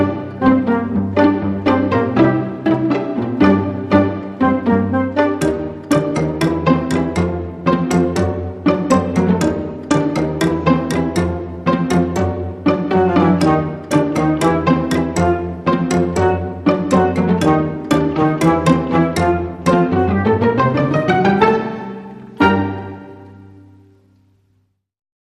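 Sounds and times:
pizzicato strings without percussion: 0.0s - 24.1s.

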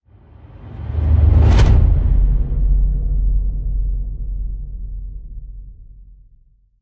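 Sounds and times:
whoosh: 0.1s - 4.0s.

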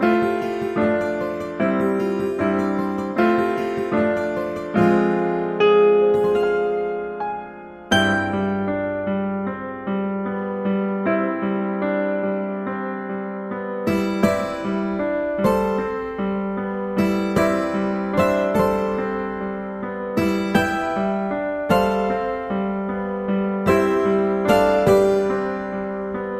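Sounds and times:
new age romance guitar and piano music: 0.0s - 26.3s.

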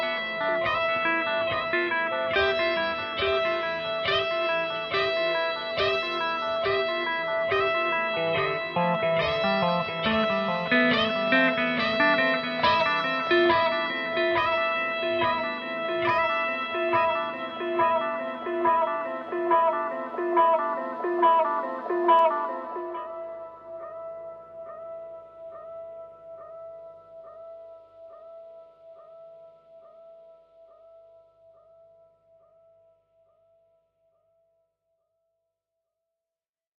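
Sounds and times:
guitar loops: 0.0s - 24.2s.

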